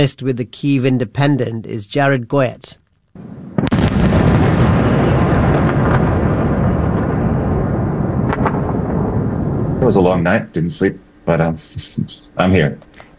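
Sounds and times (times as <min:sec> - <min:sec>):
speech: 0:00.0 - 0:03.4, 0:09.9 - 0:12.9
explosions from a barrage of strikes: 0:03.2 - 0:10.2
air raid sirens: 0:03.2 - 0:12.4.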